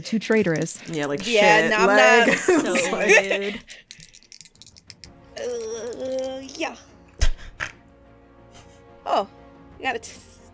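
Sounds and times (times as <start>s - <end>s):
speech: 0.0s - 3.8s, 5.4s - 6.9s, 9.0s - 10.3s
laughter: 1.4s - 3.8s
percentile dice rattling and tumbling across a hard surface: 3.8s - 5.2s.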